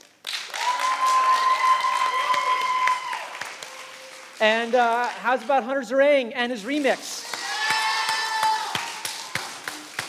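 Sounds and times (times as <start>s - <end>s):
audience applause: 0.0s - 5.5s, 7.2s - 10.0s
speech: 4.4s - 7.2s.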